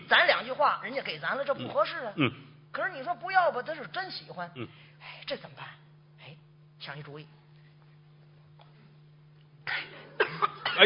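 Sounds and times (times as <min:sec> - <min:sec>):
faint low hum: 0:00.0 - 0:10.8
speech: 0:00.4 - 0:05.8, 0:06.8 - 0:07.4
person coughing harshly: 0:09.7 - 0:10.8.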